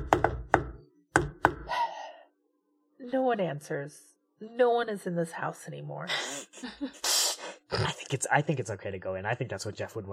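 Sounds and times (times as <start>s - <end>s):
knocking on a door: 0.0s - 1.7s
speech: 3.2s - 7.1s, 7.7s - 10.1s.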